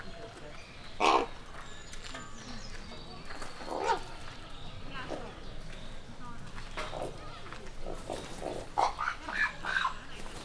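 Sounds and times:
raven warming up in a zoo: 1.0s - 1.5s, 3.7s - 4.1s, 7.9s - 9.9s.

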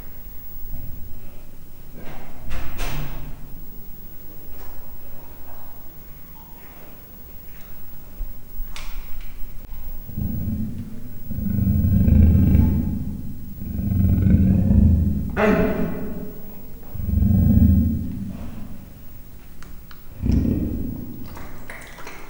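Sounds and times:
three-month-old captive leopard cub chirping in a zoo: 10.0s - 18.9s.

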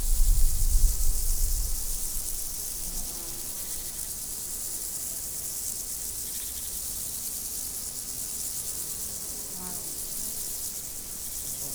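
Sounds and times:
insect chorus drone: 0.0s - 11.7s.

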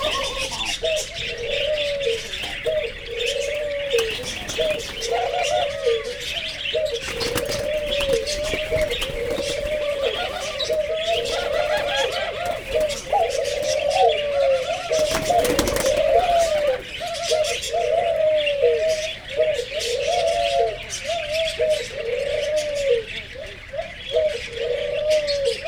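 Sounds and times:
Barbary dove low rolling coo phrases: 0.0s - 25.6s.

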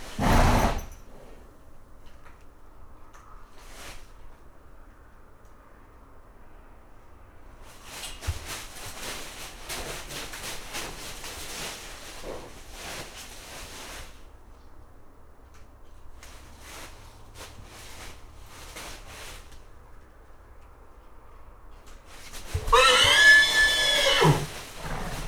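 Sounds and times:
nervous agitated horse whinnying in a stable on a farmyard: 0.1s - 1.4s, 22.6s - 25.2s.

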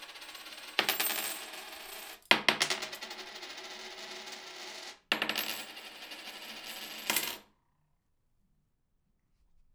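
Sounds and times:
small change coins tossed onto a table: 0.0s - 3.5s, 4.5s - 7.4s.

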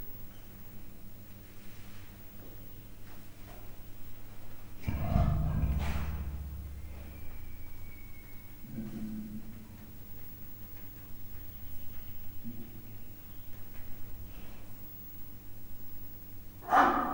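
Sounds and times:
captive male and female leopards growling: 4.8s - 9.2s.

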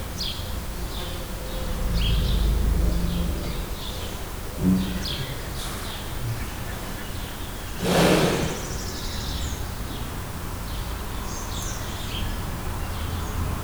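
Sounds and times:
loud birds in a zoo: 0.0s - 13.6s
quiet snoring of a Bengal tiger in a zoo: 1.4s - 9.2s.

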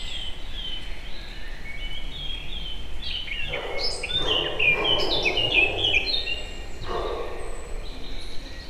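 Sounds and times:
distant dog barking from a forest: 3.4s - 8.6s.

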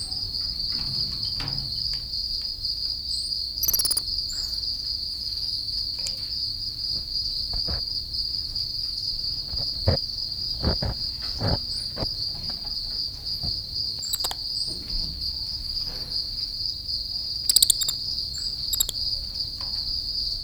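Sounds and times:
house crickets chirping loudly: 0.0s - 20.4s
golden-handed tamarin in a zoo: 3.6s - 4.0s, 14.0s - 14.4s, 17.5s - 19.0s.

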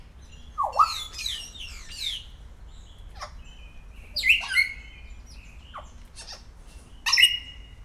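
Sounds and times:
captive grey parrot whistles and squawks at a zoo in Szeged: 0.6s - 1.4s, 7.1s - 7.6s.

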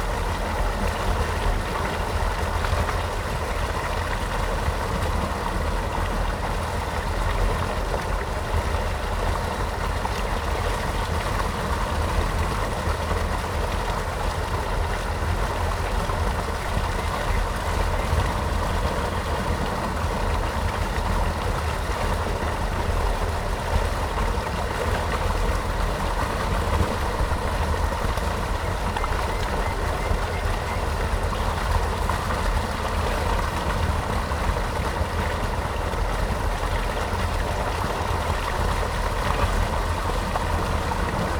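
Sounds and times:
water draining from ditch through sluice at Hortobagy fish ponds: 0.0s - 41.3s.

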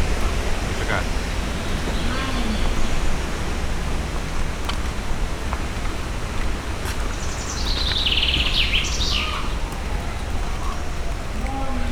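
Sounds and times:
windy weather: 0.0s - 11.9s
leopard or jaguar: 1.7s - 3.1s, 9.2s - 11.9s.

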